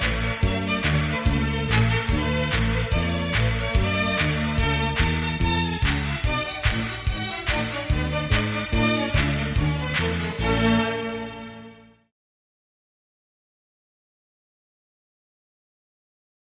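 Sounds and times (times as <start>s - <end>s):
easy listening and classical music: 0.0s - 12.0s.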